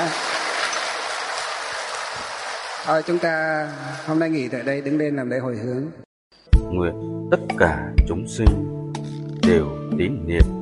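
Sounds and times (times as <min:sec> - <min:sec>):
loud applause from the audience: 0:00.0 - 0:04.7
speech: 0:02.8 - 0:06.0, 0:06.7 - 0:08.8, 0:09.4 - 0:10.6.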